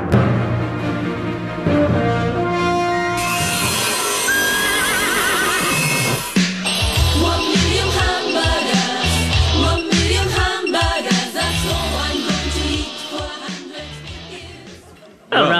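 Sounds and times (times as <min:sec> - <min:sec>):
loud dense musical mashup: 0:00.0 - 0:14.9
horse neighing and whinnying: 0:03.8 - 0:06.4.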